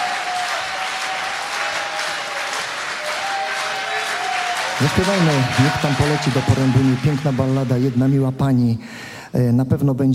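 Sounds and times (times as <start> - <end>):
audience applause: 0.0 - 8.7
speech: 4.8 - 10.1.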